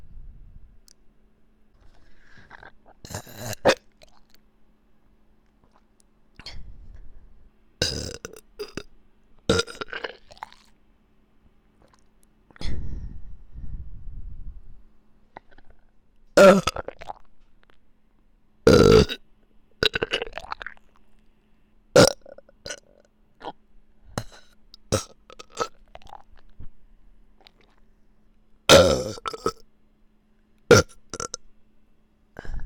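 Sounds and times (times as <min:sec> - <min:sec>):
burping: 0:02.4 - 0:03.9, 0:07.8 - 0:08.8, 0:09.5 - 0:10.6, 0:16.4 - 0:17.2, 0:18.7 - 0:19.2, 0:22.0 - 0:23.6, 0:24.2 - 0:26.3, 0:28.7 - 0:29.6, 0:30.7 - 0:31.4.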